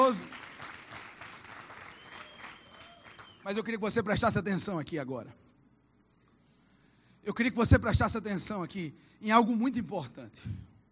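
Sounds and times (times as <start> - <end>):
audience applause: 0.0 - 3.4
speech: 3.4 - 5.5, 7.2 - 10.7.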